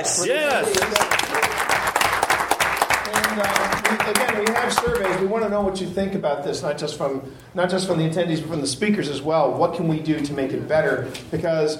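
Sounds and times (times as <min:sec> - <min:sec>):
speech: 0:00.0 - 0:01.4, 0:03.1 - 0:11.7
audience applause for attendees: 0:00.2 - 0:05.2.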